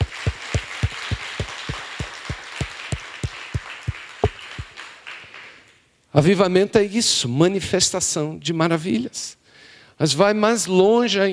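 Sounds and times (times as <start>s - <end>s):
audience applauding: 0.0s - 5.7s
speech: 6.2s - 9.4s, 10.0s - 11.3s.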